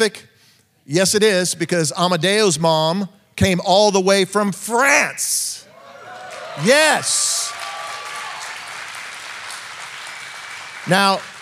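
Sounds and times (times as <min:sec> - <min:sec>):
speech: 0:00.0 - 0:00.3, 0:00.9 - 0:05.6, 0:06.6 - 0:07.4, 0:10.9 - 0:11.3
audience clapping: 0:06.0 - 0:11.4.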